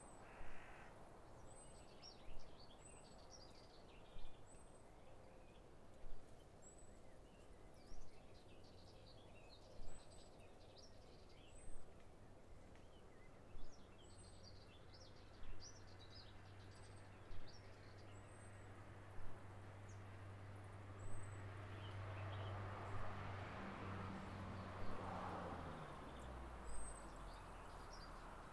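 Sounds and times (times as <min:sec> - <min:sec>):
wind in the countryside: 0:00.0 - 0:28.5.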